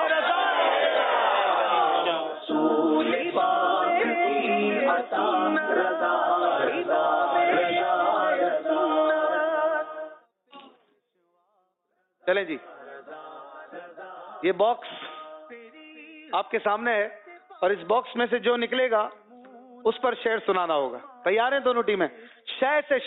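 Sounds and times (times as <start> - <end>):
crowd chanting a slogan in unison at a team quiz show: 0.0 - 10.2, 12.6 - 15.4
speech: 14.4 - 15.0, 16.3 - 19.2, 19.8 - 23.0.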